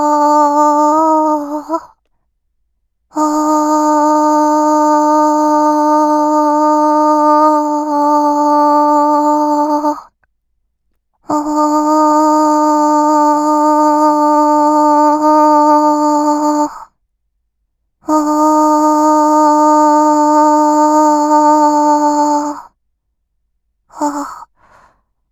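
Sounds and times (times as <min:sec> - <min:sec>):
person vocalizing a long ah: 0:00.0 - 0:01.9, 0:03.2 - 0:10.1, 0:11.3 - 0:16.8, 0:18.1 - 0:22.7, 0:23.9 - 0:24.5.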